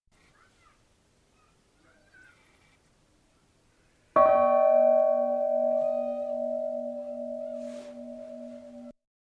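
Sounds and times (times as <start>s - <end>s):
bell ringing: 4.2s - 8.9s.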